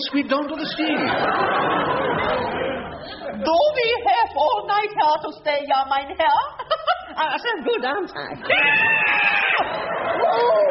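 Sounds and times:
laughter: 0.0s - 3.7s, 8.4s - 10.6s
speech: 0.0s - 10.6s
woman screaming from a cramp in her legs: 8.5s - 10.6s.

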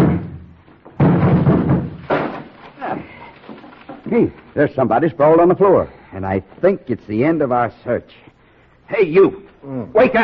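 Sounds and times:
rotten wooden barn door breaking: 0.0s - 4.1s
speech: 4.1s - 8.3s, 8.9s - 10.2s.

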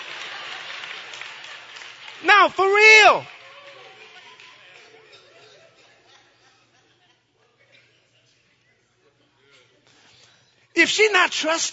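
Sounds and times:
scattered claps: 0.0s - 5.0s
speech: 2.2s - 3.3s, 10.8s - 11.7s.

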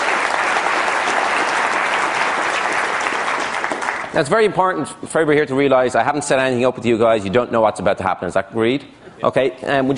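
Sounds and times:
audience applause: 0.0s - 4.2s
speech: 4.2s - 9.9s.

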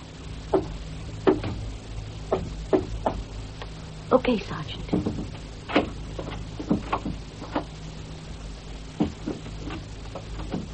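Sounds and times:
low steady hum: 0.0s - 10.7s
knocking on a door in a coded pattern: 0.5s - 1.7s, 2.3s - 3.3s, 4.9s - 7.7s
speech: 4.1s - 5.4s.

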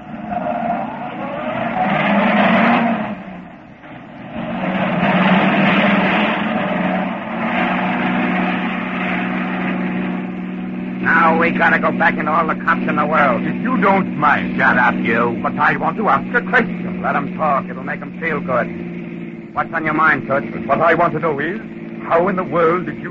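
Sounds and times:
car brakes screeching: 0.0s - 23.0s
speech: 11.6s - 18.8s, 19.6s - 23.0s.

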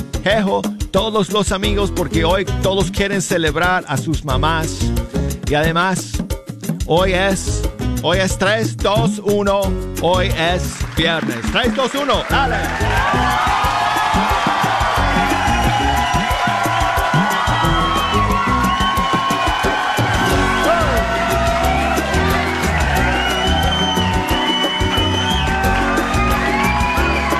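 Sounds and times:
speech: 0.2s - 6.2s, 6.9s - 13.6s
crowd clapping: 10.2s - 27.3s.

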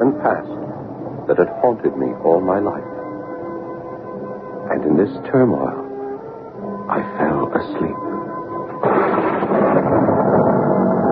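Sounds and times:
speech: 0.1s - 2.9s, 4.7s - 5.8s, 6.9s - 8.1s
enormous thunderclap and rolling rumble: 8.8s - 11.1s.

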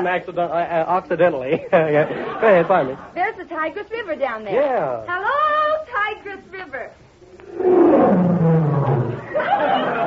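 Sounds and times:
speech: 0.0s - 8.6s, 9.3s - 10.0s
laughter: 1.5s - 3.1s, 9.2s - 10.0s
rising snarl: 7.3s - 9.4s
deep growling roar sound effect: 7.5s - 9.4s.

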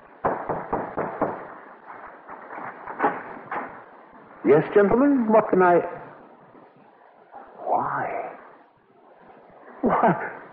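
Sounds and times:
knocking on a door: 0.2s - 1.5s
speech: 4.4s - 6.0s
laughter: 9.8s - 10.5s.

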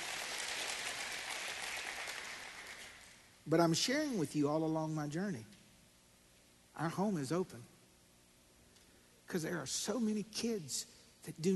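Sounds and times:
audience clapping: 0.0s - 3.3s
speech: 3.4s - 5.6s, 6.8s - 7.7s, 9.3s - 11.5s.

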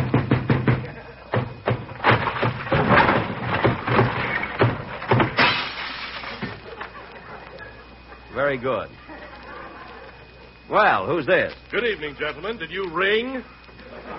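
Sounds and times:
door being broken down: 0.0s - 6.6s
laughter: 0.8s - 1.4s, 6.2s - 10.7s, 13.6s - 14.1s
speech: 8.4s - 9.0s, 10.7s - 13.6s.

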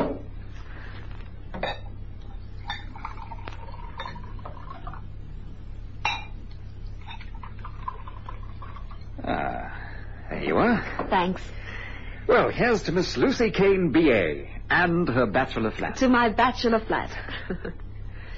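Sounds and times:
drinks being poured for a toast: 1.1s - 9.6s
speech: 11.2s - 11.6s, 12.4s - 17.8s.

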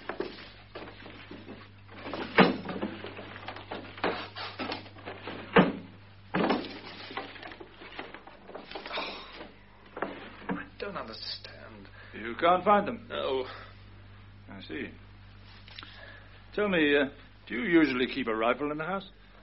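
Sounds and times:
drawers being pulled open and rummaged through: 0.0s - 10.6s
speech: 12.3s - 13.6s, 14.6s - 15.0s, 16.6s - 19.2s.

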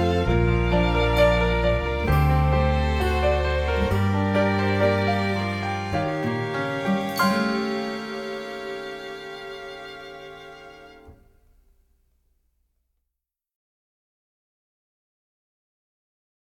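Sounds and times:
underscore music: 0.0s - 11.6s.

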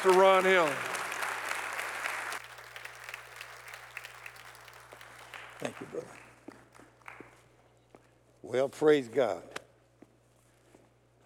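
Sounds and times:
speech: 0.0s - 1.0s, 5.6s - 6.2s, 8.5s - 9.6s
audience applause: 0.0s - 7.4s.

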